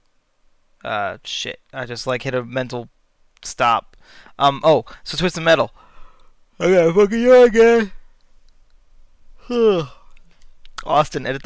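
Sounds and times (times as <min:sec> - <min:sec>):
speech: 0:00.8 - 0:05.8, 0:06.6 - 0:08.0, 0:09.5 - 0:10.0, 0:10.8 - 0:11.4
person yawning: 0:09.4 - 0:10.1.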